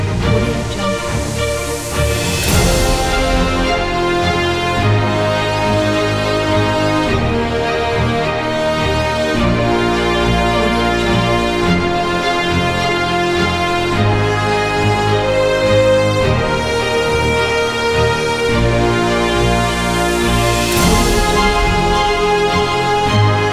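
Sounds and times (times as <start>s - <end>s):
classic heroic opener music: 0.0s - 23.5s.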